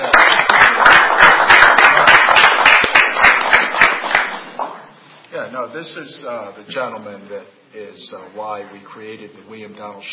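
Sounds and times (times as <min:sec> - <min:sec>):
audience applause: 0:00.0 - 0:04.8
speech: 0:05.6 - 0:10.1.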